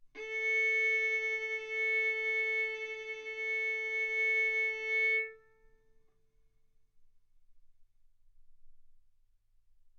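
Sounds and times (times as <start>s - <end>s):
violin bowed mezzo-forte on the A string, A4 and B4: 0.2s - 5.6s.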